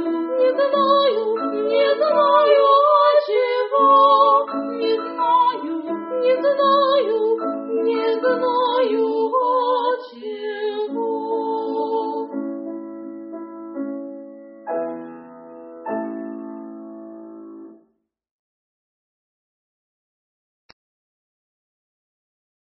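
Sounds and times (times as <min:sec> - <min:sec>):
opera duet singing: 0:00.0 - 0:12.4.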